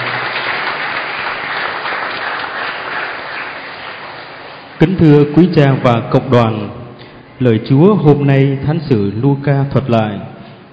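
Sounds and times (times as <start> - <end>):
audience applauding: 0.0 - 4.8
speech: 4.8 - 6.8, 7.4 - 10.3.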